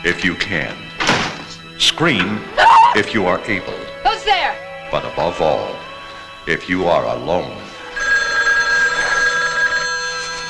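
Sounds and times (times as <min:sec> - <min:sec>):
speech: 0:00.0 - 0:00.8, 0:01.8 - 0:07.7
telephone ringing in a 1980 horror film: 0:07.1 - 0:10.4.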